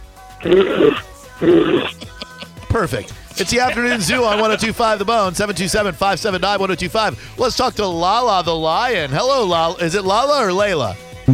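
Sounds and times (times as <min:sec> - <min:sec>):
speech: 0:00.4 - 0:02.1, 0:02.7 - 0:11.3
person imitating rhino grunts: 0:00.4 - 0:02.6
laughter: 0:00.4 - 0:05.4.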